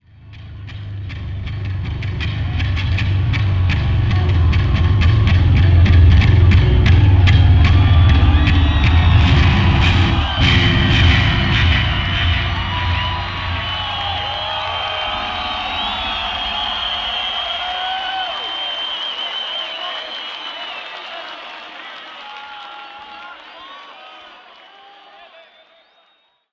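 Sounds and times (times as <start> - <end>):
bass solo: 0.1 - 17.6.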